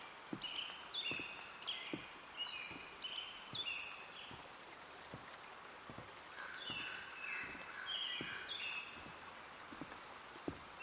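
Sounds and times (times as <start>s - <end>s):
birds chirping at Hoyt Arboretum in Portland, Oregon: 0.0s - 10.8s
soft regular ticking clicks: 0.0s - 10.8s
steady outdoor hiss: 0.0s - 10.8s.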